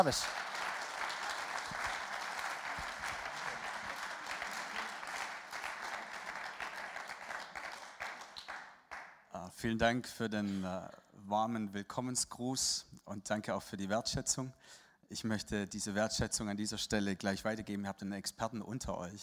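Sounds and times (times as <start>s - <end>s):
speech: 0.0s - 0.5s, 9.5s - 19.2s
audience applause: 0.0s - 9.1s.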